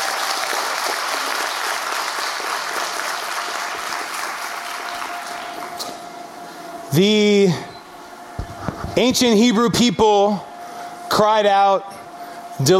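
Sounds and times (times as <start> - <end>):
audience applause: 0.0 - 5.7
speech: 6.9 - 7.7, 9.0 - 10.5, 11.2 - 12.0, 12.6 - 12.7.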